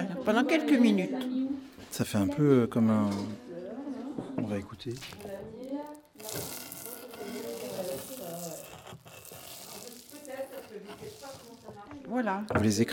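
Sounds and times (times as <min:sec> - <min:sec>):
speech: 0:00.2 - 0:01.3, 0:01.9 - 0:03.4, 0:04.5 - 0:05.6, 0:10.7 - 0:12.9
food sizzling in a pan of oil: 0:04.9 - 0:11.9.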